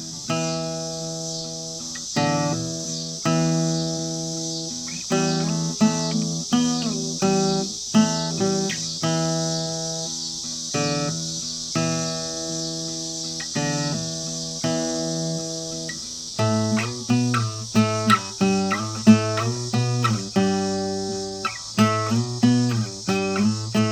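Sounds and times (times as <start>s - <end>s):
blues music: 0.0s - 23.8s
cicadas: 0.0s - 23.8s.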